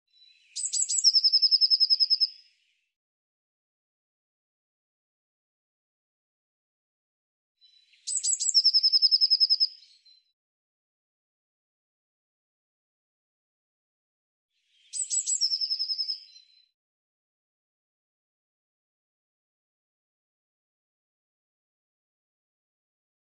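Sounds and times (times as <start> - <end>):
bird song: 0.1 - 3.0, 7.6 - 10.4, 14.6 - 16.8.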